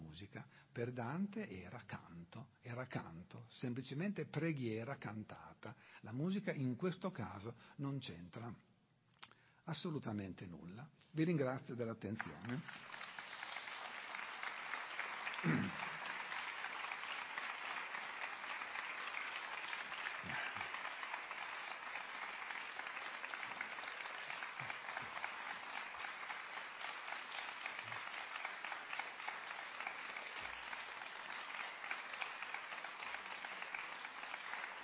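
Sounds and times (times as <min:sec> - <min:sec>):
speech: 0:00.2 - 0:08.7, 0:09.6 - 0:13.0
audience applause after a lecture: 0:12.2 - 0:34.8.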